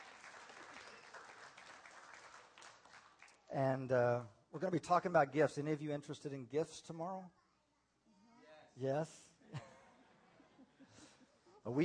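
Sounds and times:
audience clapping: 0.0s - 3.6s
speech: 3.5s - 7.4s, 8.8s - 9.7s, 11.6s - 11.8s.

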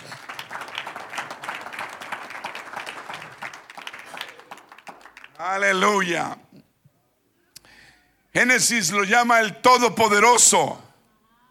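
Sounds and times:
audience applauding: 0.0s - 5.8s
speech: 5.4s - 6.4s, 8.4s - 10.9s.

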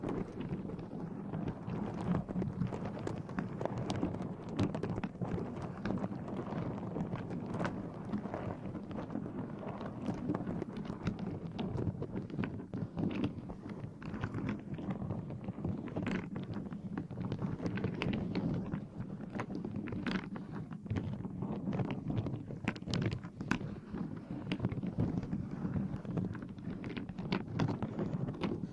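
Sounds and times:
scratching on a microphone: 0.0s - 28.7s.

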